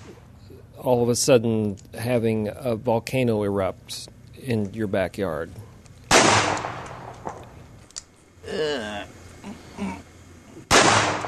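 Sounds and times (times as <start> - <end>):
speech: 0.8 - 5.7
gunshots blasting a painted portrait, played from an online video: 6.1 - 7.4, 10.7 - 11.2.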